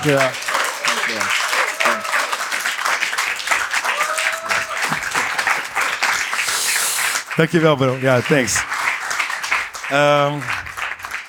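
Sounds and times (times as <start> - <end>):
speech: 0.0 - 0.5, 7.4 - 8.7, 9.9 - 10.7
faint voices and whoops: 0.0 - 2.6, 3.7 - 5.4
crowd applause: 0.0 - 11.2.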